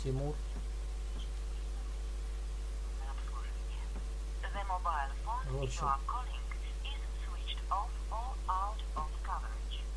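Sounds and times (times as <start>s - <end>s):
speech: 0.0s - 0.6s, 4.6s - 6.4s, 7.7s - 9.9s
steady low electrical hum: 0.0s - 9.9s
tinny narrow-band recorded voice over a phone line to a disconnected number: 4.4s - 9.8s.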